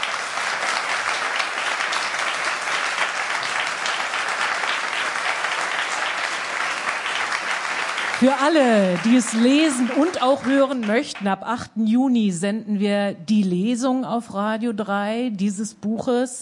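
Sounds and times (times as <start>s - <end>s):
audience applause: 0.0s - 11.2s
speech: 8.2s - 16.4s.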